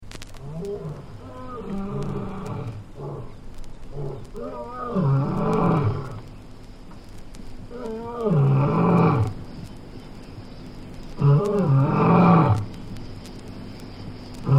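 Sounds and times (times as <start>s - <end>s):
animal low harmonic moaning cries: 0.4s - 6.2s, 7.7s - 9.4s, 11.2s - 12.7s.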